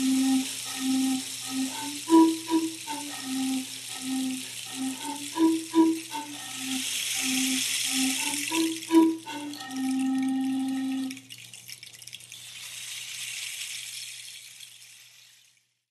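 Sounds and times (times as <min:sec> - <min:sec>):
pan flute: 0:00.0 - 0:11.3
rain stick: 0:00.0 - 0:15.8.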